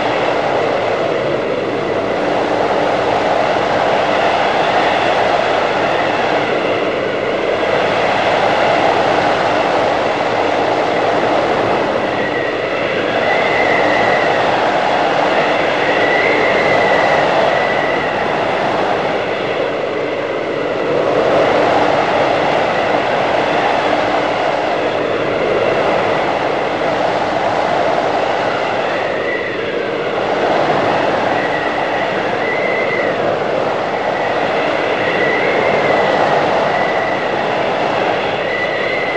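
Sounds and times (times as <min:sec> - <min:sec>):
blizzard: 0:00.0 - 0:39.1.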